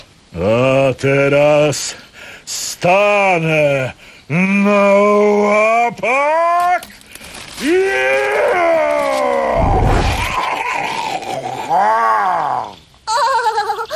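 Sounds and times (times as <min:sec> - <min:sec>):
speech: 0:00.3 - 0:06.9
person imitating a bear's roar: 0:07.6 - 0:12.8.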